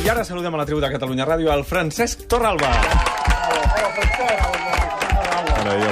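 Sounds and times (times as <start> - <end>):
speech: 0.1 - 4.9, 5.7 - 5.9
studio applause: 2.3 - 5.9.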